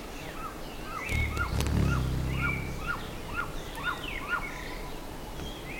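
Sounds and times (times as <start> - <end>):
birds chirping: 1.1 - 4.7.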